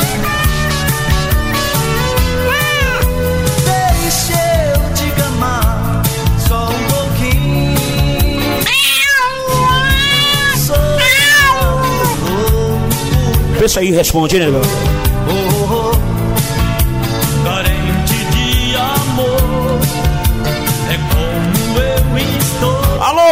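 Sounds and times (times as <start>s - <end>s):
dense steady musical backing: 0.0s - 23.2s
several cats meowing: 0.3s - 3.2s, 8.5s - 12.4s
speech: 13.7s - 15.4s.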